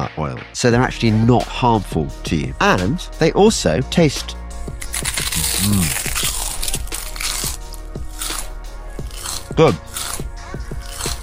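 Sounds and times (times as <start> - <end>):
speech: 0.0 - 6.0, 9.6 - 10.1
crisps cooked in coconut oil crunching as they are chewed: 4.8 - 11.2.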